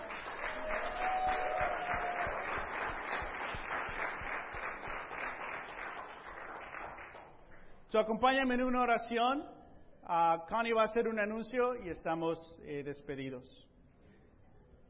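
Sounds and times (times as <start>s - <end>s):
audience applause: 0.0s - 7.3s
speech: 7.9s - 13.7s.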